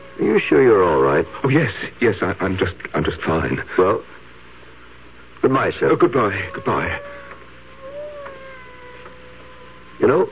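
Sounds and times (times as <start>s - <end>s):
faint cat meow: 0.0s - 1.6s, 6.2s - 10.3s
soft hiss: 0.0s - 10.3s
speech: 0.2s - 4.2s, 5.4s - 7.2s, 10.0s - 10.3s.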